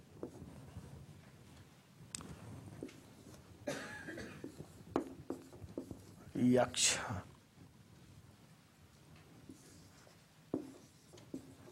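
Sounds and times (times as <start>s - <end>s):
writing strokes during a lecture: 0.2s - 1.0s, 2.3s - 3.5s, 4.4s - 6.5s, 9.4s - 11.7s
speech: 6.4s - 7.3s.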